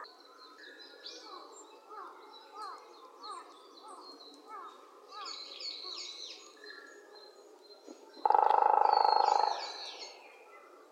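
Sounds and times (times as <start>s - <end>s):
Japanese green woodpecker calling with whistled notes: 8.2s - 10.0s.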